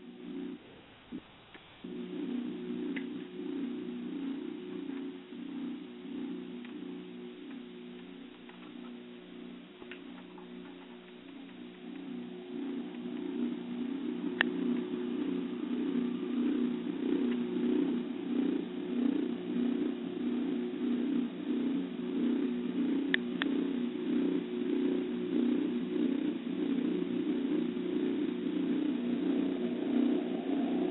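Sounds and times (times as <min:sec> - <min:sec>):
trance music with resonant tones: 0:00.0 - 0:01.2, 0:01.8 - 0:30.9.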